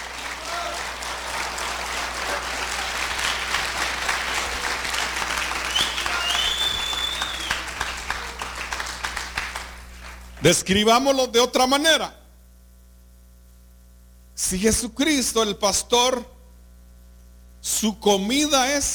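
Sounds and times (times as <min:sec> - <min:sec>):
audience applause: 0:00.0 - 0:10.4
speech: 0:10.4 - 0:12.2, 0:14.5 - 0:16.4, 0:17.6 - 0:18.9.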